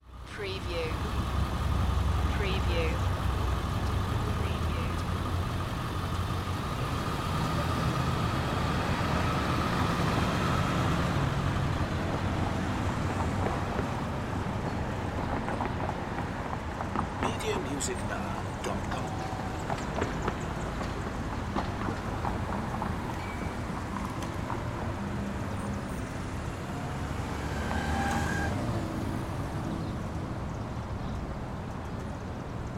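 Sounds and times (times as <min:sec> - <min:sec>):
small downtown city ambience: 0:00.0 - 0:32.7.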